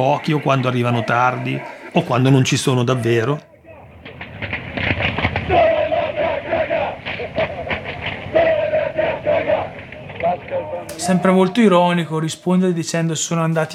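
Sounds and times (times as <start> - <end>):
speech: 0.0 - 3.5, 11.1 - 13.7
football ultras chanting in stadium: 0.0 - 11.8.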